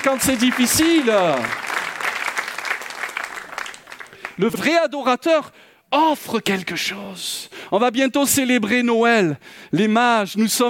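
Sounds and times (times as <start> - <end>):
speech: 0.0 - 1.7, 4.4 - 10.6
church congregation applauding: 0.0 - 4.7.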